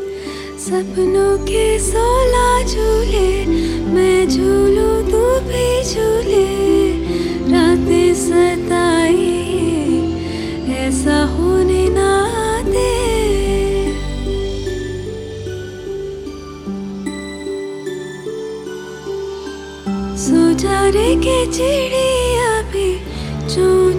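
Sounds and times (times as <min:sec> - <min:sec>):
woman singing: 0:00.2 - 0:14.8, 0:20.1 - 0:23.9.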